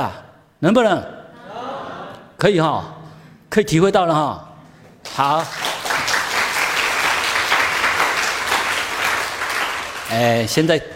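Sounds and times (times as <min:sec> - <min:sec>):
speech: 0:00.0 - 0:01.2, 0:02.4 - 0:05.7, 0:10.1 - 0:10.9
audience clapping: 0:04.9 - 0:10.7.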